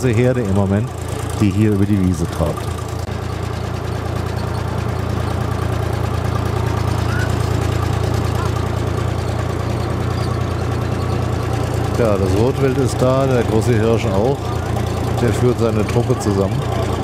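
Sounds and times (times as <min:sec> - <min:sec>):
speech: 0:00.0 - 0:02.8, 0:12.0 - 0:14.6, 0:15.2 - 0:16.8
car engine driving onto a meadow: 0:00.0 - 0:17.0.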